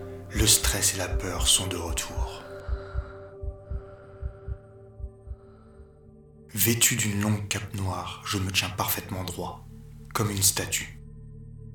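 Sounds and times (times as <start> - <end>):
rapid heartbeat: 0.1 - 5.6
speech: 0.4 - 2.5, 6.6 - 11.0.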